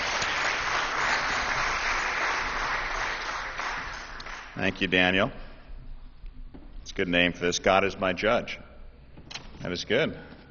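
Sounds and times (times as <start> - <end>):
audience clapping: 0.0 - 4.8
speech: 4.6 - 5.4, 7.0 - 8.6, 9.6 - 10.3.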